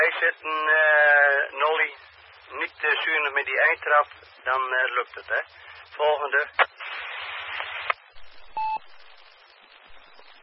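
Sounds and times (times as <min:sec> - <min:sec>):
radio static from a weak transmission: 0:00.0 - 0:10.4
speech: 0:00.2 - 0:06.8
steady mid-pitched beep: 0:08.5 - 0:09.0.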